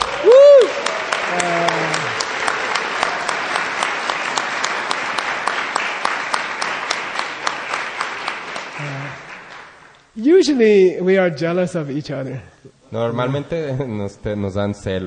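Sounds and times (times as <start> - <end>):
audience clapping: 0.0 - 10.2
speech: 10.4 - 15.0.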